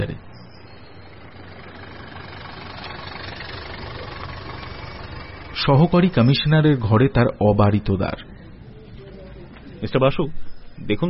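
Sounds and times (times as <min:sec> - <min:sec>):
car engine running: 0:00.3 - 0:06.8
speech: 0:05.6 - 0:08.3, 0:09.8 - 0:11.0.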